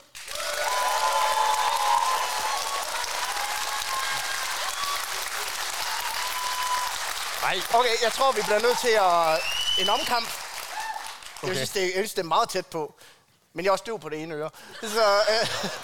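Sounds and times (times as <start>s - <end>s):
crowd clapping to vote: 0.0s - 11.9s
speech: 7.5s - 10.4s, 11.4s - 15.8s
laughter: 14.8s - 15.8s.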